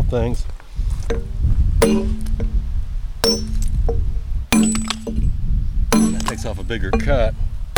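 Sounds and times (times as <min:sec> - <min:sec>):
speech: 0:00.1 - 0:02.2, 0:06.4 - 0:07.7
hammer and chisel ringing on stone: 0:01.1 - 0:02.6, 0:03.2 - 0:05.3, 0:06.0 - 0:07.2.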